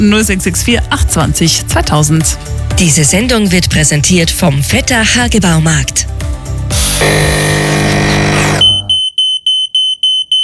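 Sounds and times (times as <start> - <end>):
speech: 0.0 - 6.2, 7.0 - 7.4
coffee machine whirring and grinding: 7.0 - 8.7
coffee machine high-pitched beeps: 7.0 - 10.4.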